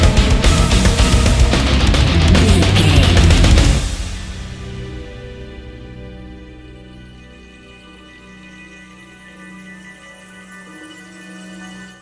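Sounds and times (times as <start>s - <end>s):
ominous scary action adventure music: 0.0s - 9.4s.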